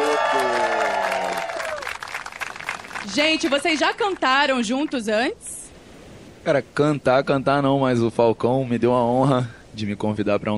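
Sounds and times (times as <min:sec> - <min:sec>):
beach audience cheering and whooping: 0:00.0 - 0:03.3
live beach audience applauding: 0:00.0 - 0:04.6
speech: 0:03.1 - 0:05.4, 0:06.4 - 0:10.5.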